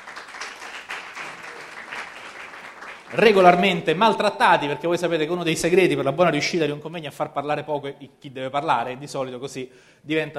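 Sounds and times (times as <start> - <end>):
conference audience applause: 0.0 - 3.9
speech: 3.1 - 10.3.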